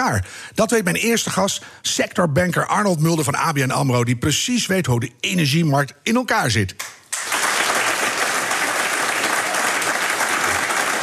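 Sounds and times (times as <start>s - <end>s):
speech: 0.0s - 7.0s
audience applause: 7.1s - 11.0s.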